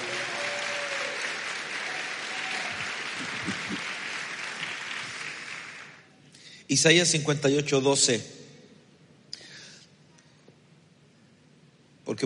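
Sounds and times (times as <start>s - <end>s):
audience applause: 0.0s - 6.1s
speech: 6.7s - 8.4s.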